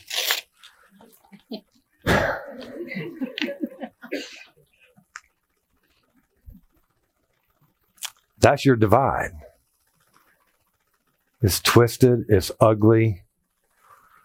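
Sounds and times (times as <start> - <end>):
something being torn apart by hand: 0.0 - 0.7
laughter: 2.3 - 4.5
speech: 8.4 - 9.4, 11.4 - 13.2.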